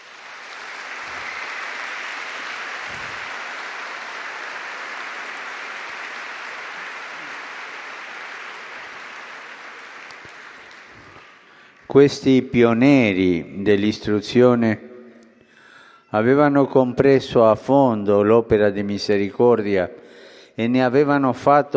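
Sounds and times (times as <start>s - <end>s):
audience applause: 0.0s - 11.9s
speech: 11.9s - 14.9s, 16.1s - 20.0s, 20.6s - 21.7s.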